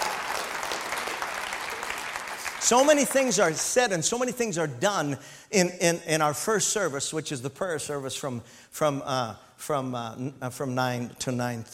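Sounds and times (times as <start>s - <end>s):
audience clapping hands: 0.0s - 4.0s
speech: 2.6s - 11.7s.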